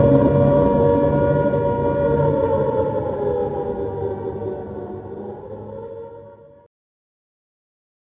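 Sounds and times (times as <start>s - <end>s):
long air raid siren: 0.0s - 6.7s.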